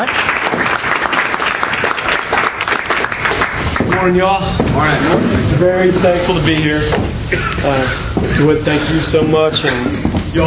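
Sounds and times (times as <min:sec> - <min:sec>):
audience applause: 0:00.0 - 0:04.2
speech: 0:04.0 - 0:10.4.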